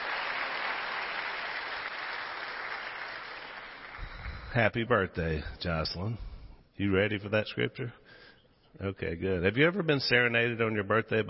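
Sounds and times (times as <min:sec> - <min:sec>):
audience applause: 0:00.0 - 0:04.3
speech: 0:04.5 - 0:11.2.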